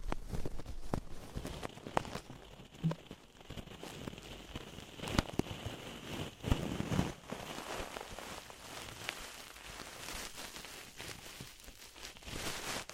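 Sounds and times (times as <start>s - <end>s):
sharp clicks and pops: 0.0s - 5.7s
ear cleaning crackling scratches and rustles: 0.0s - 12.9s.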